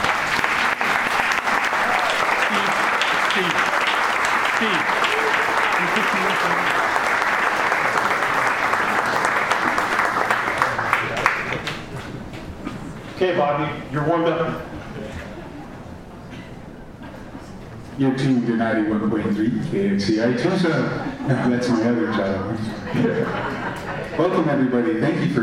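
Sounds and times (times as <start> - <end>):
audience applause: 0.0 - 12.6
scattered voices and cheers: 1.7 - 3.8, 4.6 - 7.0
laughter: 1.8 - 9.8, 20.4 - 24.7
speech: 4.6 - 5.4, 13.2 - 14.8, 18.0 - 23.5, 24.2 - 25.4.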